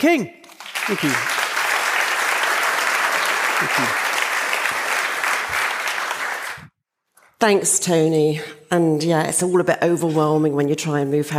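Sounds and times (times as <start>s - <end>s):
speech: 0.0s - 1.4s, 3.6s - 4.0s, 7.4s - 11.3s
audience applause: 0.5s - 6.7s.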